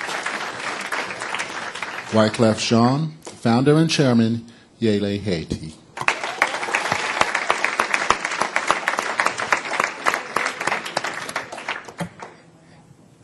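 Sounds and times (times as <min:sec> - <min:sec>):
audience applause: 0:00.0 - 0:02.5, 0:06.0 - 0:12.4
speech: 0:02.1 - 0:05.8.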